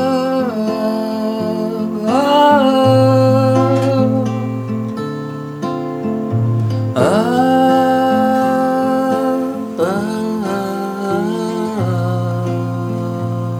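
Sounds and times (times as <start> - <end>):
guitar: 0.0 - 13.5.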